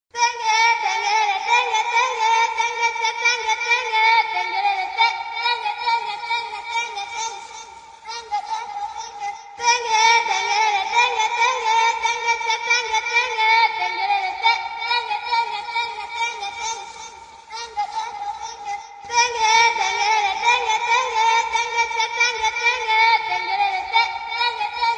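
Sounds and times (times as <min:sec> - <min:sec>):
a cappella singing: 0:00.2 - 0:24.9.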